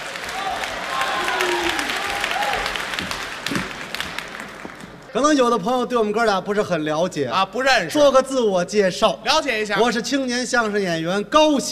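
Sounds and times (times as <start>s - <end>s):
audience applause welcoming three traditional crosstalk comedians onto a stage: 0.0s - 5.1s
speech: 5.2s - 11.7s.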